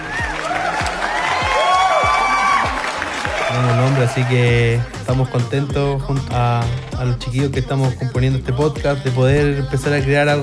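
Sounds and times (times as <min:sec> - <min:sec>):
crowd applauding and cheering: 0:00.0 - 0:07.0
speech: 0:03.6 - 0:10.4.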